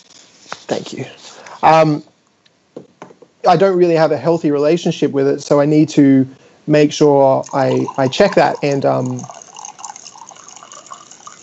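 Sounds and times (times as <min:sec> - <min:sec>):
speech: 0:00.7 - 0:02.1, 0:03.4 - 0:09.4
coffee being poured: 0:07.4 - 0:11.4.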